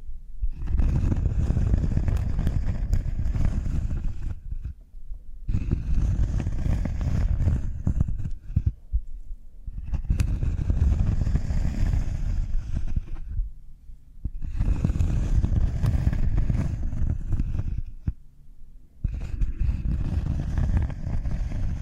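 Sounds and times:
cork scratchy rubbing and squeaking: 0:00.4 - 0:04.8, 0:05.5 - 0:08.8, 0:09.7 - 0:13.4, 0:14.3 - 0:18.2, 0:19.0 - 0:21.8.

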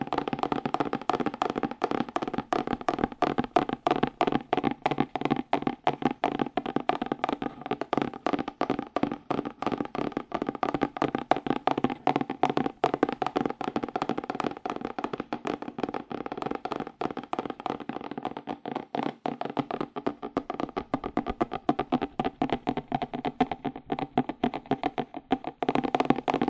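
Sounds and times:
fast aggressive cardboard tapping: 0:00.0 - 0:26.4.

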